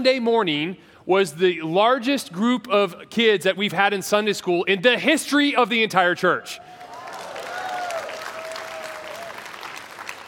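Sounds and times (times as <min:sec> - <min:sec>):
speech: 0:00.0 - 0:06.8
audience clapping: 0:06.8 - 0:10.2.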